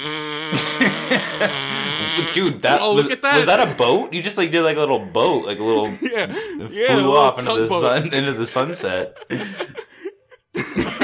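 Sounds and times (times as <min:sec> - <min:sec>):
fart: 0:00.0 - 0:02.6
laughter: 0:00.5 - 0:02.8, 0:05.6 - 0:11.0
speech: 0:00.5 - 0:09.9, 0:10.6 - 0:11.0.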